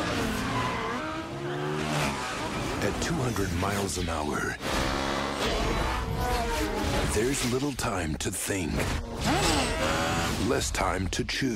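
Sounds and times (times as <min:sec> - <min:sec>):
squealing tires: 0:00.0 - 0:03.4, 0:04.6 - 0:07.3, 0:09.1 - 0:10.4
engines roaring in the trailer for the 2004 film Torque: 0:00.0 - 0:11.5
speech: 0:02.8 - 0:04.8, 0:05.4 - 0:09.4, 0:10.4 - 0:11.5.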